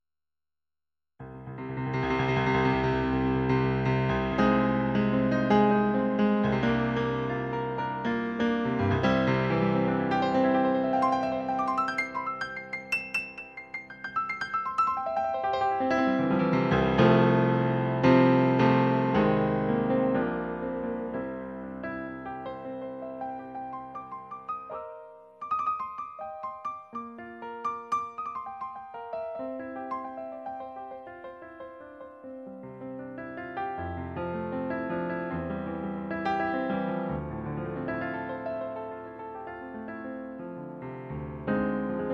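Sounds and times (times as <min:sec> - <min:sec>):
acoustic grand piano: 0:01.2 - 0:42.1.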